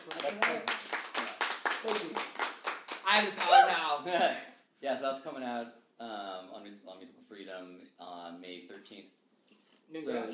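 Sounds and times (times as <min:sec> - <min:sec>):
hands clapping: 0:00.0 - 0:04.0
speech: 0:03.1 - 0:09.2, 0:09.9 - 0:10.3.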